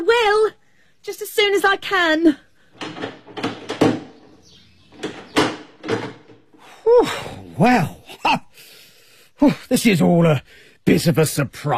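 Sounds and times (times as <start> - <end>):
speech: 1.0 - 2.4, 7.6 - 8.4, 9.4 - 11.7
door being unlocked and opened: 2.7 - 6.6.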